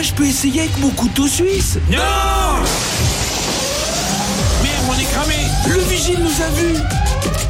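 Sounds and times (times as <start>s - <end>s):
speech: 0.0s - 3.2s, 4.8s - 7.4s
window glass being smashed: 2.7s - 5.3s
rising wailing alarm-like tone: 3.4s - 7.4s.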